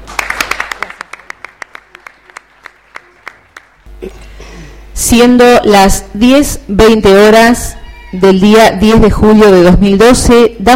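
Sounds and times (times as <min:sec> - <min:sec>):
audience applause: 0:00.0 - 0:03.9
speech: 0:05.0 - 0:10.7.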